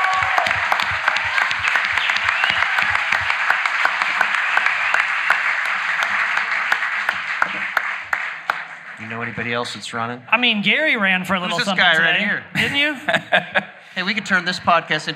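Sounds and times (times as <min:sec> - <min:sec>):
audience applause: 0:00.0 - 0:10.1
speech: 0:09.4 - 0:15.1
laughter: 0:11.4 - 0:14.6.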